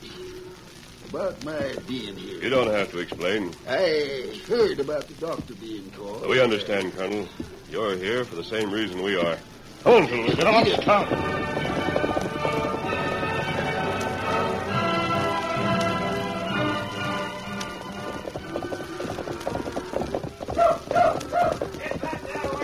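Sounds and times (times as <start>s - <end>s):
horse hooves clip-clopping as a rider approaches: 0.0s - 22.6s
speech: 1.1s - 11.6s
music: 10.0s - 22.6s.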